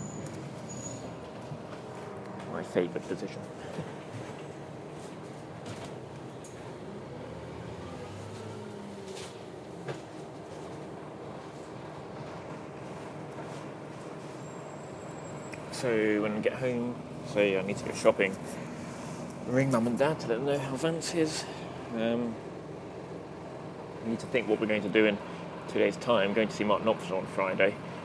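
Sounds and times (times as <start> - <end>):
riding inside a moving bus: 0.0 - 28.0
speech: 2.5 - 4.0, 15.8 - 18.7, 19.5 - 22.5, 24.0 - 27.8.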